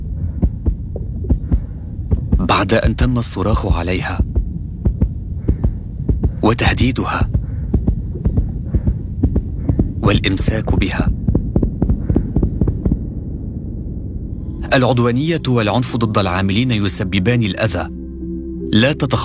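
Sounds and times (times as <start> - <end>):
nurse's heartbeat: 0.0 - 13.1
low hum: 0.0 - 19.2
speech: 2.4 - 4.3, 6.5 - 7.3, 10.1 - 11.2, 14.7 - 18.0, 18.7 - 19.2.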